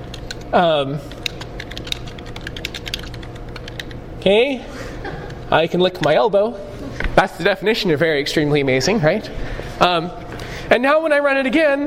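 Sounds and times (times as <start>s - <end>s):
typing on a computer keyboard: 0.1s - 0.5s, 1.1s - 4.0s
speech: 0.5s - 1.2s, 4.2s - 4.8s, 5.5s - 11.8s.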